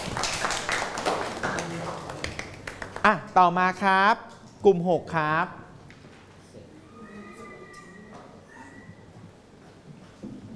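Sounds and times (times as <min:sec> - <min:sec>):
class of students clapping: 0:00.0 - 0:03.2
speech: 0:03.0 - 0:05.6.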